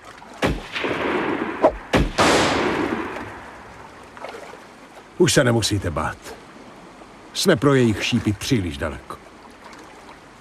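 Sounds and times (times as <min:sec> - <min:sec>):
gunshots: 0:00.4 - 0:03.5
speech: 0:05.2 - 0:06.4, 0:07.4 - 0:09.2.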